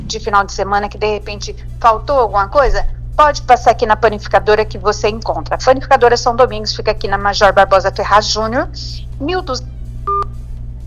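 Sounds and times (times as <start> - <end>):
low telephone line hum: 0.0 - 10.8
speech: 0.1 - 9.7
telephone tone on a dropped phone call: 10.0 - 10.4.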